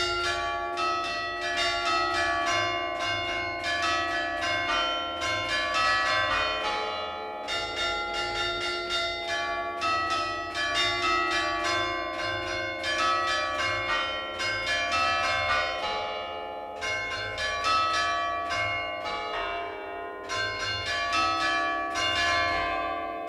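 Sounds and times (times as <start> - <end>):
church bells ringing in Genova Liguria: 0.0 - 23.2.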